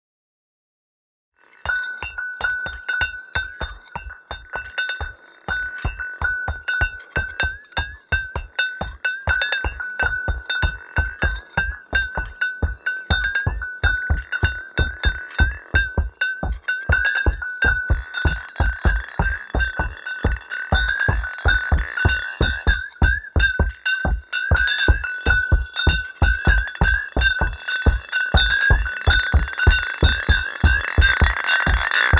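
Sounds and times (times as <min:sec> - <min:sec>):
Fanta bottle played as instrument: 0:01.7 - 0:32.1.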